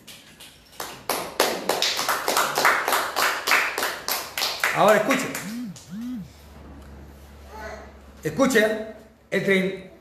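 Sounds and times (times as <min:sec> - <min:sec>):
audience clapping hands: 0:00.8 - 0:05.5
speech: 0:04.8 - 0:05.6, 0:08.2 - 0:09.9.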